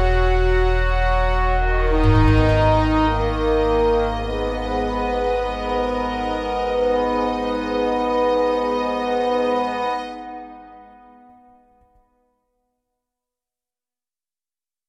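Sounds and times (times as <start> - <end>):
orchestral music: 0.0 - 11.6.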